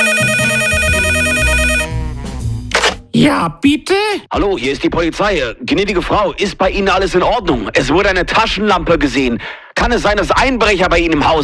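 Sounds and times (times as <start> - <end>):
telephone ringing: 0.0 - 1.9
speech: 3.2 - 11.4.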